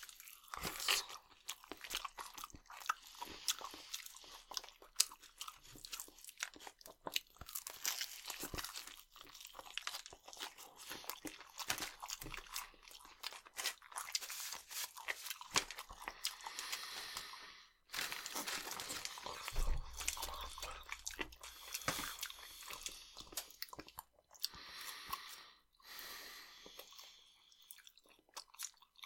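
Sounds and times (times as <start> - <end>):
crunching and chewing crispy fried chicken skin: 0.0 - 26.0.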